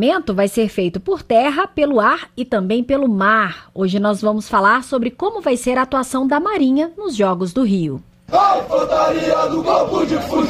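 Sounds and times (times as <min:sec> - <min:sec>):
speech: 0:00.0 - 0:10.4
troops shouting a battle cry: 0:08.3 - 0:10.4.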